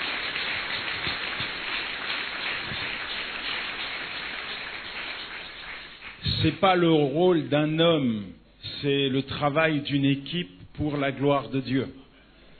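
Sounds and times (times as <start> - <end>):
audience applause: 0.0 - 6.6
speech: 6.4 - 12.0.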